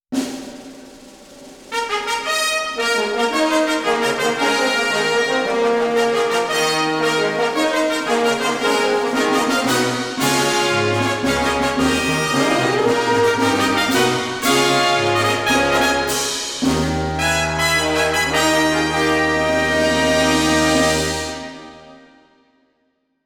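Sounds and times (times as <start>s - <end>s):
fanfare: 1.7s - 22.3s.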